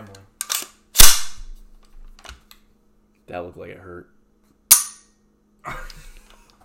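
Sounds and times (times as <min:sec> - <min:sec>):
gunshot crack from a trigger pull: 0:01.0 - 0:01.5
speech: 0:03.3 - 0:04.2.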